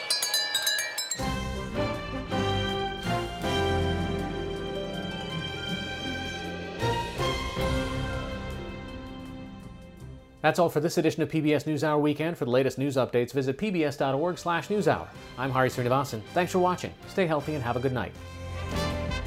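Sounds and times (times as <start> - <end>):
train striking notes playing a medley of classical pieces: 0.2 - 10.4, 15.2 - 19.2
speech: 10.4 - 18.4.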